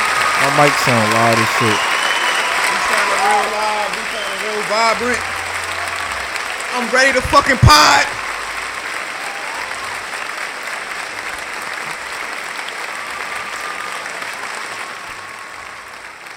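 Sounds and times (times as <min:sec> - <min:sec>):
extended applause and clapping: 0:00.0 - 0:16.3
speech: 0:00.5 - 0:01.9, 0:03.4 - 0:05.3, 0:06.7 - 0:08.2.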